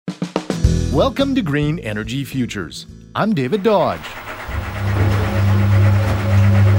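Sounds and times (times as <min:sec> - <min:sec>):
speech: 0:00.9 - 0:04.3
old top-loading washing machine running a load: 0:04.0 - 0:06.7.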